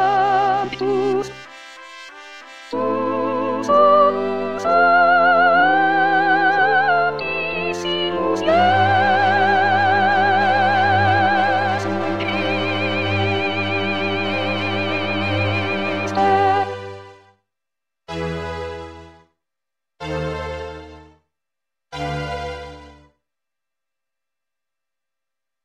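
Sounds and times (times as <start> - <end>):
soprano singing: 0.0 - 1.3, 2.8 - 16.9.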